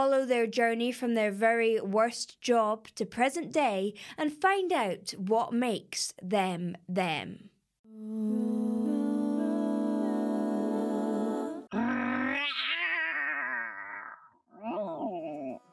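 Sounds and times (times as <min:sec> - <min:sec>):
speech: 0:00.0 - 0:08.8
singer holding a long sung note: 0:07.9 - 0:11.9
wavering vocal growl: 0:07.9 - 0:15.6
singer's gravelly vocal imitation of a roar: 0:11.7 - 0:15.6.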